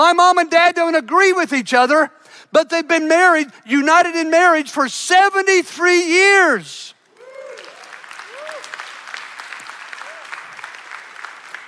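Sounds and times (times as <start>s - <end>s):
speech: 0.0s - 7.0s
audience applause: 7.1s - 11.6s.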